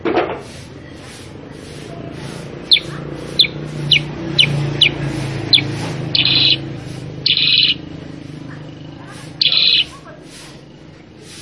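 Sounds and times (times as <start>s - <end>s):
sooty-headed bulbul calling: 2.6s - 8.0s, 9.2s - 10.0s.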